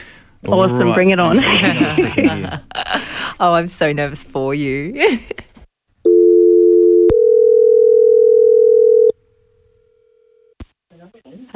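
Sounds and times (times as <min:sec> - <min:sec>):
speech: 0:00.4 - 0:05.5
laughter: 0:01.3 - 0:03.1
landline telephone ringing tone: 0:06.1 - 0:09.2.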